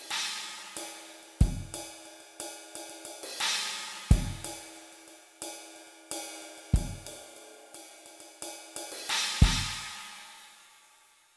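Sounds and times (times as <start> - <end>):
centered cymbals: 0.0 - 11.1.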